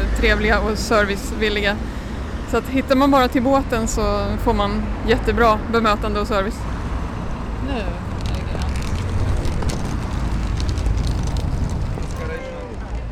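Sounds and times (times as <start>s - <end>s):
traffic at a noisy street intersection: 0.0s - 13.1s
speech: 0.2s - 6.8s, 7.7s - 8.0s.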